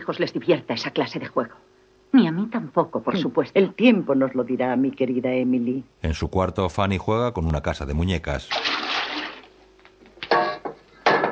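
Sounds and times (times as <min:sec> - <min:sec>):
speech: 0:00.0 - 0:08.7
water poured out of a washbasin: 0:08.5 - 0:09.6.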